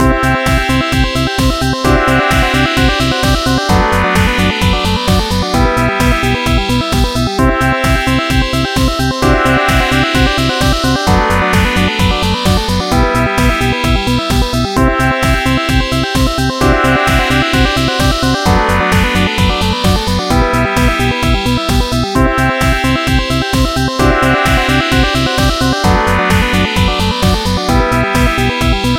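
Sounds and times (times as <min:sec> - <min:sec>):
dance party music: 0:00.0 - 0:28.9.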